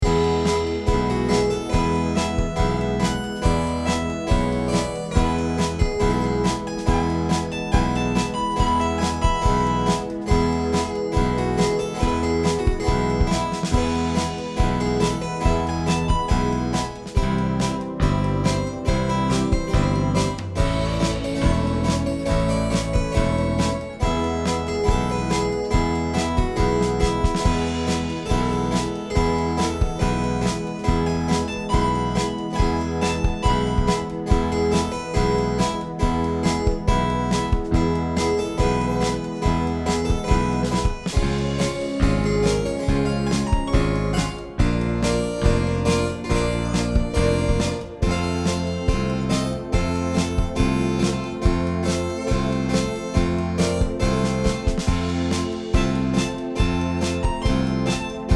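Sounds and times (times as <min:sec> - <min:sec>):
guitar: 0:00.0 - 0:58.3.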